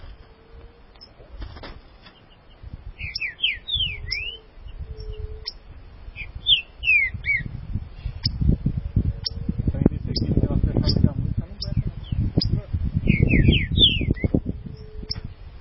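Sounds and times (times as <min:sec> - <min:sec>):
low background rumble: 0:00.0 - 0:15.5
Green-winged saltator whistled song: 0:03.0 - 0:05.6, 0:06.2 - 0:07.5, 0:11.6 - 0:15.2.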